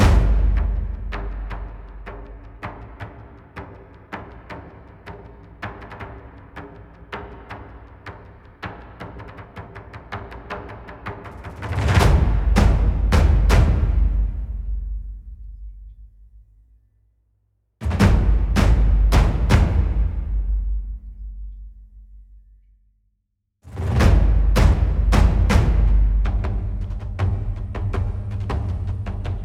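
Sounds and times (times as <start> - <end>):
low drums: 0.0 - 16.6, 17.8 - 22.7, 23.7 - 29.4.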